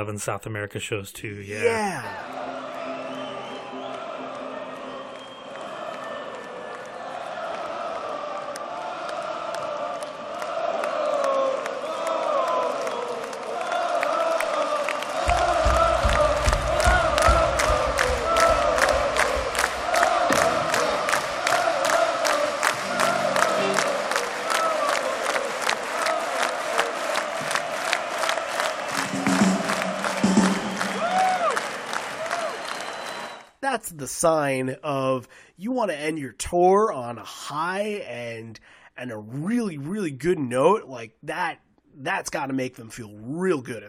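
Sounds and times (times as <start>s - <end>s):
speech: 0.0s - 2.5s, 34.1s - 43.8s
concert crowd roaring and cheering after a song: 1.5s - 33.5s
rhythmic clapping: 2.3s - 33.4s.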